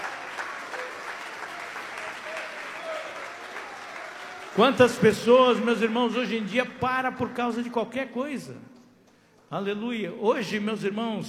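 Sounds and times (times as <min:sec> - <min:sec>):
clapping: 0:00.0 - 0:06.6
speech: 0:04.6 - 0:08.7, 0:09.5 - 0:11.2.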